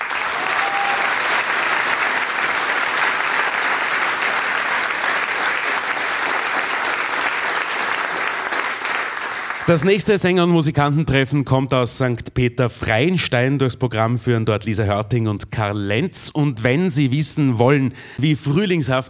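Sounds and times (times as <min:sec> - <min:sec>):
audience applause: 0:00.0 - 0:10.0
speech: 0:09.7 - 0:19.0.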